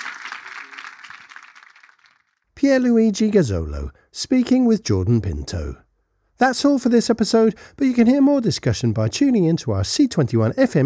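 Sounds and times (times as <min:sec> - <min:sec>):
audience round of applause: 0:00.0 - 0:02.3
speech: 0:02.6 - 0:05.8, 0:06.4 - 0:10.8.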